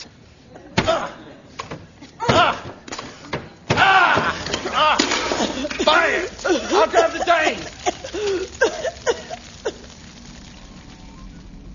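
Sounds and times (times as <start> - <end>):
door being broken down: 3.4 - 8.3
laughter: 4.2 - 10.0.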